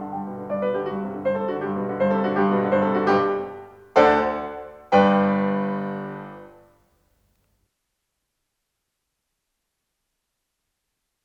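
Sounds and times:
piano sonata in G major: 0.0s - 6.8s.

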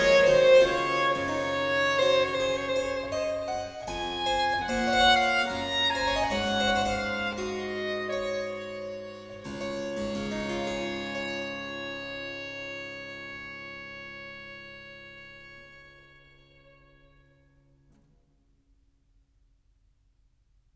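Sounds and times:
harpsichord: 0.0s - 12.9s
violin: 0.0s - 17.6s.

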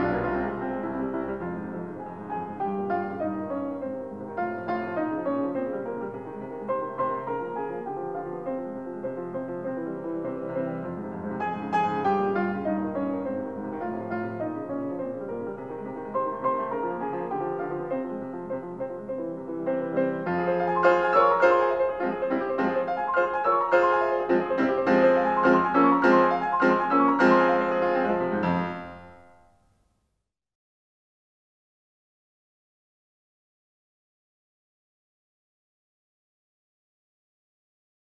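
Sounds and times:
piano sonata: 0.0s - 30.0s.

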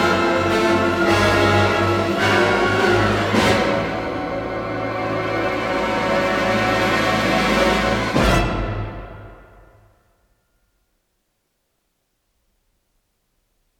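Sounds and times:
orchestra playing a symphony in F minor: 0.0s - 9.7s.

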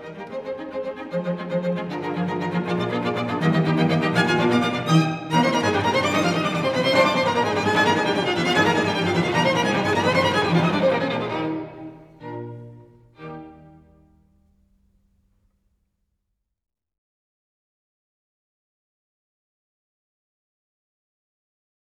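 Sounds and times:
string quartet playing: 0.0s - 14.8s.

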